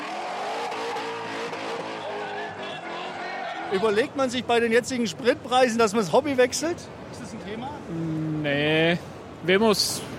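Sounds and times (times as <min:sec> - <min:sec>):
drifting car engine revving: 0:00.0 - 0:03.4
drifting car tyres squealing and skidding: 0:00.0 - 0:04.0
speech: 0:03.7 - 0:10.1.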